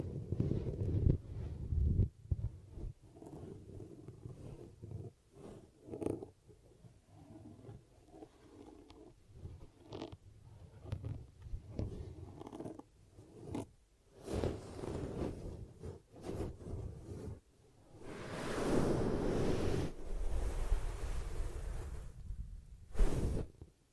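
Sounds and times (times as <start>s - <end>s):
crackly zipper-like scrapes: 0.0s - 22.2s, 22.9s - 23.6s
ear cupping rubs and pats over the microphone: 0.0s - 23.8s.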